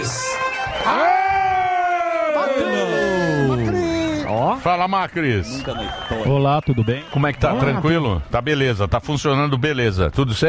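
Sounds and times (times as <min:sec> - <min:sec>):
audience applause: 0:00.0 - 0:04.6, 0:05.2 - 0:08.0
speech: 0:04.6 - 0:10.4.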